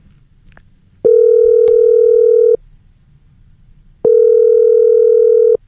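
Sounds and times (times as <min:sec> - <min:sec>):
ringback tone of an outgoing phone call: 0:01.1 - 0:02.6, 0:04.0 - 0:05.6.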